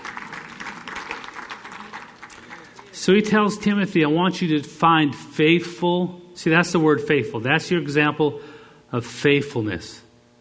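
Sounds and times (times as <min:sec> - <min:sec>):
church congregation applause during a sermon: 0:00.0 - 0:03.0
speech: 0:03.0 - 0:10.0.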